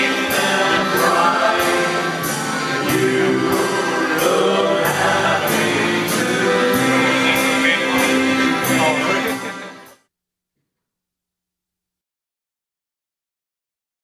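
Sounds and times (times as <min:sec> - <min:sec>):
German band playing: 0:00.0 - 0:10.0.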